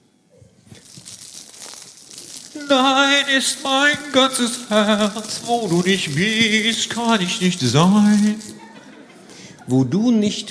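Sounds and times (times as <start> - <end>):
person imitating shellac record crackle: 0.5 - 8.8
speech: 2.6 - 8.6, 9.7 - 10.4
laughter: 8.2 - 10.4.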